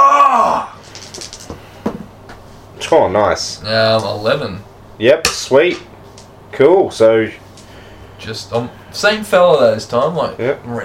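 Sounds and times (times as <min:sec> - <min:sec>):
person screaming: 0:00.0 - 0:00.8
speech: 0:02.9 - 0:05.9, 0:06.6 - 0:07.4, 0:08.2 - 0:10.8.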